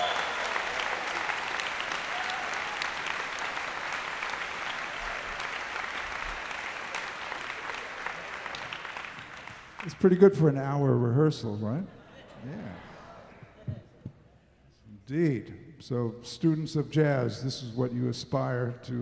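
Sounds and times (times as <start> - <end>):
large audience applause for a band: 0.0 - 10.3
speech: 9.8 - 12.6, 15.1 - 19.0.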